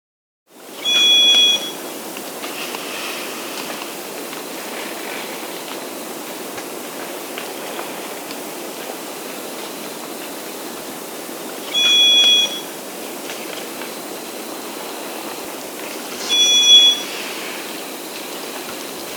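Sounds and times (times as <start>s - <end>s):
white-eared solitaire high-pitched ringing tone in South America: 0.8s - 1.8s, 11.7s - 12.8s, 16.1s - 17.2s.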